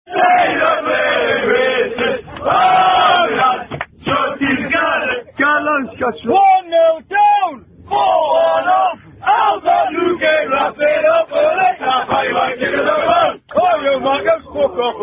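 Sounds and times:
people singing football chants on a bus: 0.1 - 6.2, 7.9 - 15.0.

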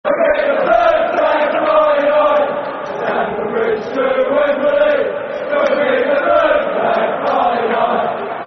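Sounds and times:
football crowd chanting: 0.1 - 8.4.

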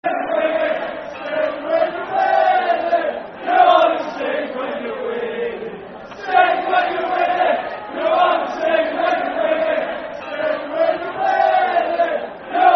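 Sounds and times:
football crowd chanting: 0.0 - 12.7.

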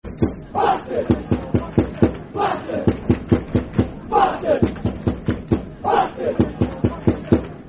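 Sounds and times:
football crowd chanting: 0.2 - 7.6.

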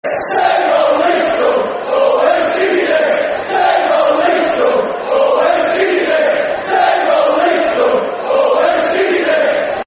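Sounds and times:
football chant: 0.0 - 9.8.

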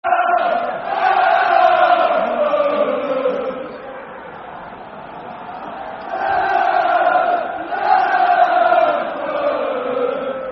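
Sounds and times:
football chant: 0.1 - 10.5.

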